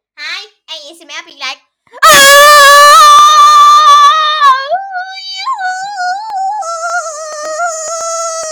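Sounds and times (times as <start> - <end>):
ASMR sounds: 2.0 - 8.4.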